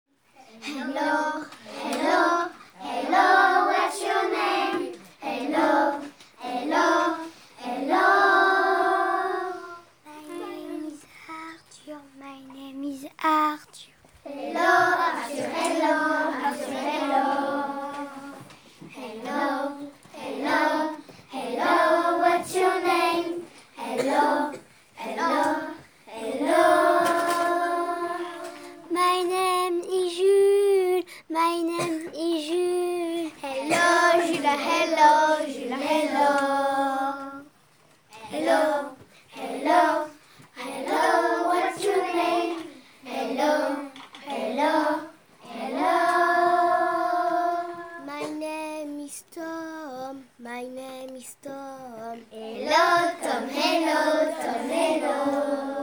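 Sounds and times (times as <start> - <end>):
vocals: 0.4 - 55.8.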